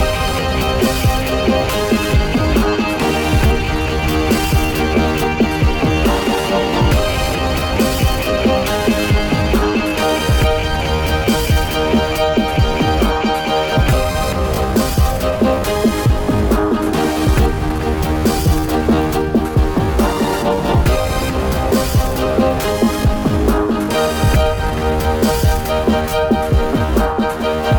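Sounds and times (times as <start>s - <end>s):
music: 0.0s - 27.7s.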